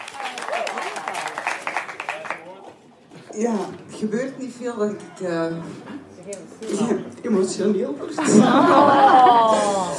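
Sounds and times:
audience applause: 0.0s - 2.6s
speech: 3.4s - 9.9s
laughter: 8.2s - 9.9s.

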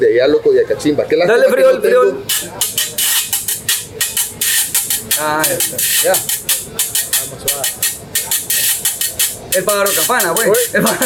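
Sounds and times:
speech: 0.0s - 3.2s, 5.2s - 7.9s, 9.6s - 11.0s
merengue güiro scraping: 2.2s - 11.0s
laughter: 10.5s - 11.0s.

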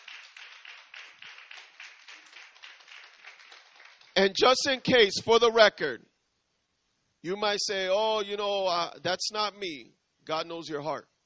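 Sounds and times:
church audience applauding: 0.0s - 4.4s
speech: 4.2s - 6.1s, 7.2s - 11.1s.

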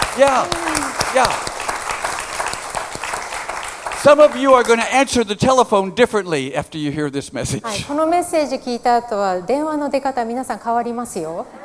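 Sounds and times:
applause, hand clapping from a crowd: 0.0s - 5.4s
speech: 0.2s - 1.5s, 4.0s - 11.6s.

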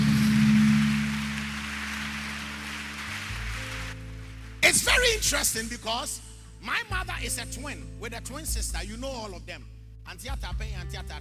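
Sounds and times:
audience clapping: 0.0s - 5.2s
speech: 4.7s - 11.2s.

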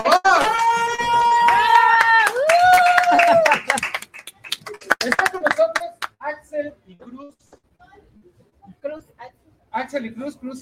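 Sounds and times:
high whooping cheers: 0.0s - 3.9s
audience clapping: 0.0s - 6.2s.

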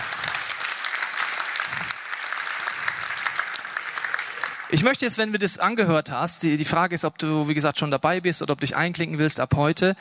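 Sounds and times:
audience applause: 0.0s - 5.3s
speech: 4.7s - 9.9s.

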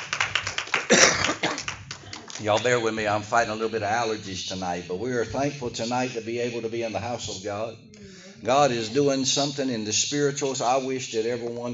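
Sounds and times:
audience clapping hands in praise: 0.0s - 2.8s
speech: 2.4s - 11.7s.

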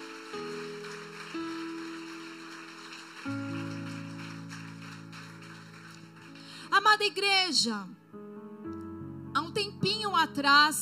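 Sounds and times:
audience applause: 0.0s - 6.7s
speech: 6.8s - 8.0s, 10.2s - 10.7s.

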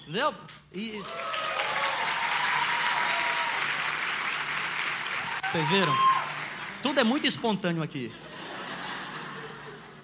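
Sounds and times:
speech: 0.0s - 1.6s, 5.5s - 6.2s, 6.8s - 8.2s
audience applause: 1.0s - 7.5s
laughter: 8.1s - 10.0s.

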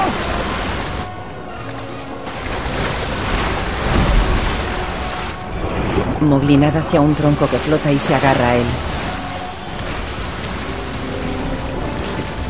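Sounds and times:
rushing river current: 0.0s - 12.4s
speech: 6.2s - 8.9s.

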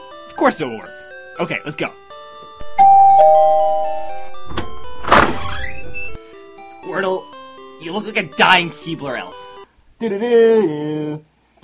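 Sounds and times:
speech: 0.4s - 2.0s, 7.8s - 9.4s, 10.0s - 11.6s
doorbell ding-dong: 2.6s - 5.0s.

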